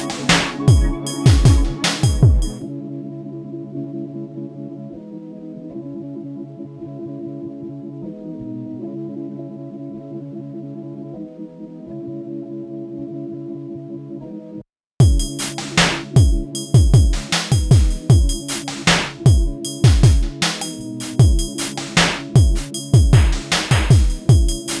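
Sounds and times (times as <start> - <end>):
abstract percussion: 0.0 - 2.6, 15.0 - 24.7.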